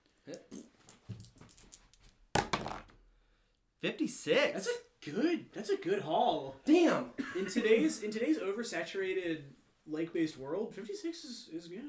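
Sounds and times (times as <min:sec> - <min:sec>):
percentile dice rolling: 0:00.9 - 0:03.0
speech: 0:03.8 - 0:11.8.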